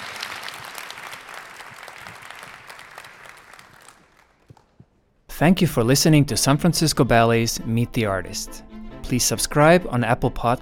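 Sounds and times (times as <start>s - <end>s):
audience applause: 0.0s - 4.8s
speech: 5.4s - 10.6s.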